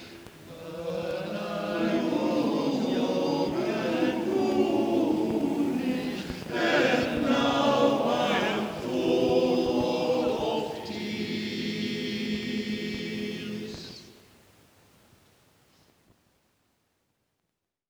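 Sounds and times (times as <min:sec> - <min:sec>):
choir singing: 0:00.0 - 0:14.2.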